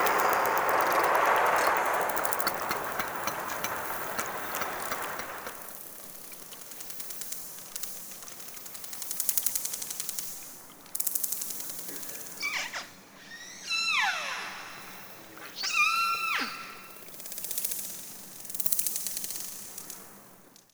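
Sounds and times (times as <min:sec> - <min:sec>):
orcas of Avacha Bay: 0:00.0 - 0:05.7, 0:11.8 - 0:17.3.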